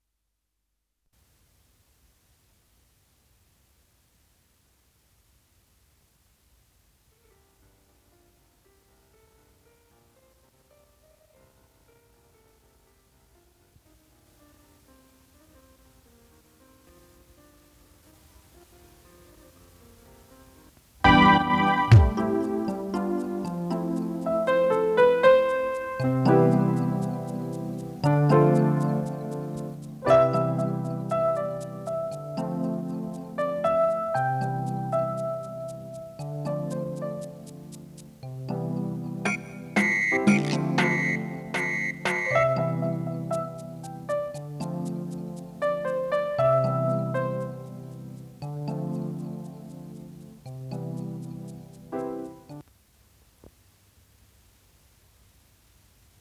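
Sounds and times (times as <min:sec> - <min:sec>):
solo piano: 0:21.0 - 0:52.6.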